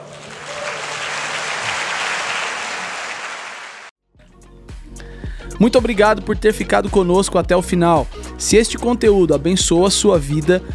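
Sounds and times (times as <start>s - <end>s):
audience applause: 0.0s - 3.9s
soft music with a low bass tone: 4.2s - 10.7s
speech: 5.6s - 10.7s.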